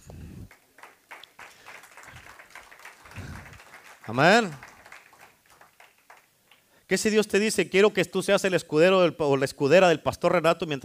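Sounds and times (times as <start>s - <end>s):
audience applause: 0.5s - 6.6s
speech: 4.1s - 4.7s, 6.9s - 10.8s.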